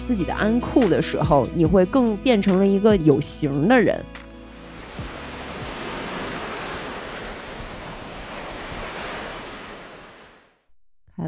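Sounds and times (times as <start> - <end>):
speech: 0.1 - 4.2
ocean waves at the seaside: 4.2 - 10.7.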